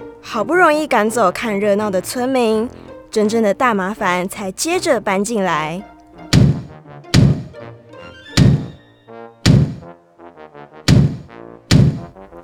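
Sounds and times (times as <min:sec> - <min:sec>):
speech: 0:00.2 - 0:05.9
heavy thumps from upstairs: 0:06.3 - 0:07.6, 0:08.4 - 0:08.8, 0:09.5 - 0:09.9, 0:10.9 - 0:12.2.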